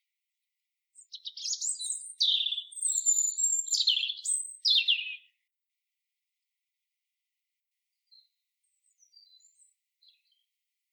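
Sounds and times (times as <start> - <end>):
European robin Erithacus rubecula singing: 1.0 - 5.4, 8.1 - 10.4.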